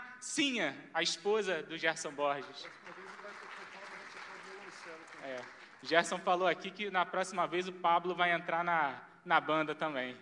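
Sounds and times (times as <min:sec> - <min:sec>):
speech: 0:00.2 - 0:03.2, 0:05.2 - 0:10.1
round of applause during a church service: 0:02.2 - 0:06.5.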